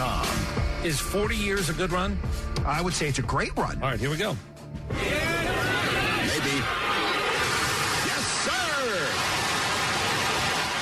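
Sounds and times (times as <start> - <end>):
speech: 0.8 - 5.1
golf crowd roaring at Augusta: 4.9 - 10.8.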